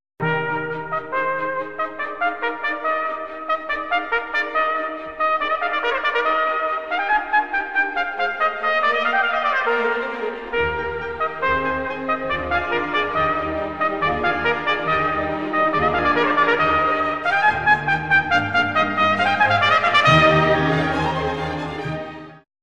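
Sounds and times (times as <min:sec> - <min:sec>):
trumpet: 0:00.2 - 0:22.4.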